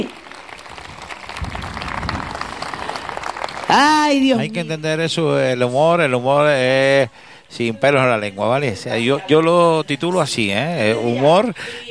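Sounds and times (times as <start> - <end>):
audience applause: 0.0 - 4.4
speech: 3.7 - 11.8.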